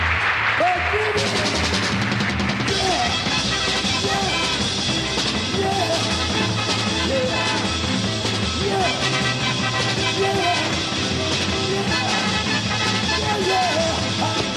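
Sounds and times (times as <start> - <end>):
live-show audience applause for a big band's bass player: 0.0 - 3.4
crowd voices: 0.0 - 14.5.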